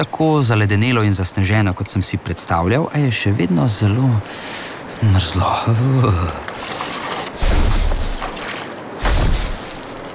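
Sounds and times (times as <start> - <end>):
speech: 0.0 - 6.8
heavy thudding footfalls with low rumble: 7.4 - 8.4, 9.0 - 10.0.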